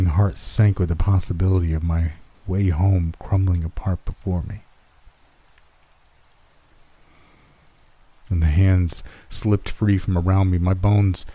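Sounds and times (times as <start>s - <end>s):
rain falling: 0.0s - 11.3s
speech: 0.2s - 4.6s, 8.3s - 11.3s.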